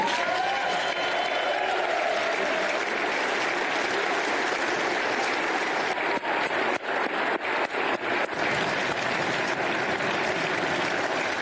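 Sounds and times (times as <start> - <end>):
audience applause: 0.0 - 11.4.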